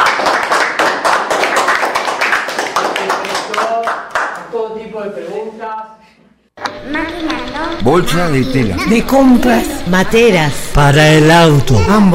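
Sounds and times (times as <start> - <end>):
applause: 0.0 - 4.5
speech: 7.9 - 12.1.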